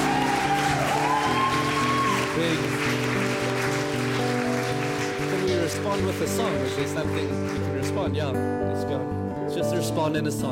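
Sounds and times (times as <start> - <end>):
audience applause and cheering: 0.0 - 8.0
speech: 6.0 - 10.4.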